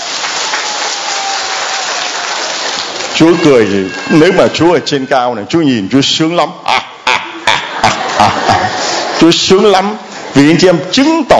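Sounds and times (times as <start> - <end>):
congregation clapping hands: 0.0 - 4.6
speech: 3.2 - 6.9, 8.2 - 11.3
laughter: 6.7 - 10.8.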